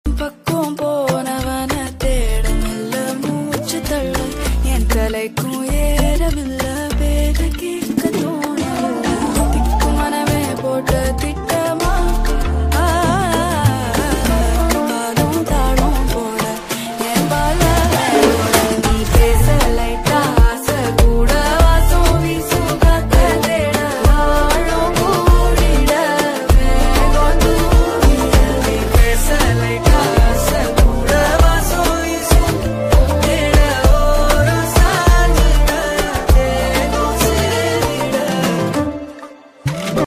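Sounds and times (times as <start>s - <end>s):
Tamil song background music ringtone: 0.1s - 40.0s.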